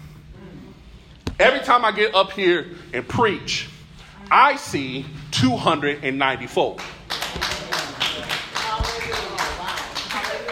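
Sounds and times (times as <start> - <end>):
speech: 1.4 - 7.5
audience clapping: 6.6 - 10.4.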